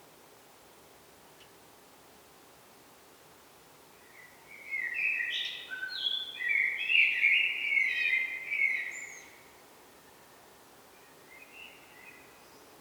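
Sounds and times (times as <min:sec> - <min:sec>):
Eurasian blackbird Turdus merula song: 0:04.0 - 0:09.5, 0:11.0 - 0:12.7.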